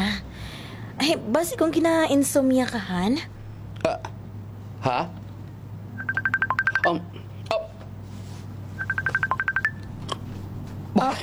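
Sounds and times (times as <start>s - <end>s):
speech: 1.0s - 4.1s, 4.8s - 5.2s, 6.8s - 7.2s, 11.0s - 11.2s
cellphone ringing: 6.0s - 7.0s, 8.8s - 9.9s.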